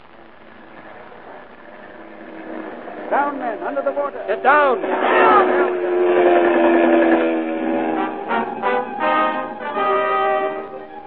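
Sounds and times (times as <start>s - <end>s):
German Junkers dive bomber diving with siren-like wail: 2.4s - 11.0s
speech: 3.1s - 6.3s.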